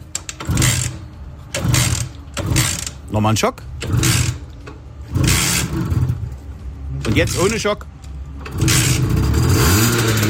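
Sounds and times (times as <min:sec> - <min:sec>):
Simson S51 moped engine running and revving: 0:00.4 - 0:03.0, 0:03.8 - 0:06.4, 0:08.3 - 0:10.2
speech: 0:03.1 - 0:04.3, 0:07.2 - 0:07.9.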